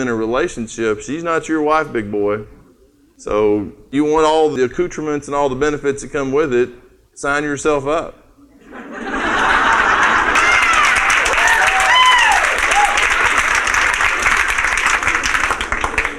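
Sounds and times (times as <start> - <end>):
speech: 0.0 - 2.6, 3.2 - 8.2
people laughing: 8.5 - 11.6, 12.7 - 14.2
people cheering: 9.2 - 16.1
audience clapping: 9.6 - 16.1.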